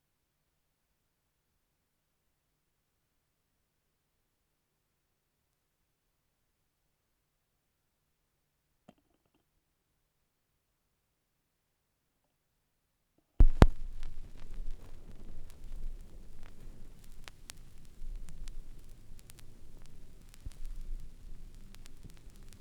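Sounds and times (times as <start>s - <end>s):
vinyl record noise: 13.4s - 22.5s.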